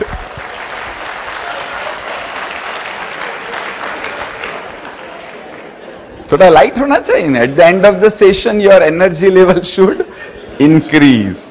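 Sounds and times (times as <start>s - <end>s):
audience clapping: 0.0s - 6.1s
speech: 6.3s - 11.4s.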